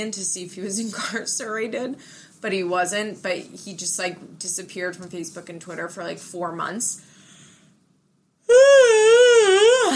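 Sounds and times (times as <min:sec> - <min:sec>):
speech: 0:00.0 - 0:07.1
person yawning: 0:08.5 - 0:09.9.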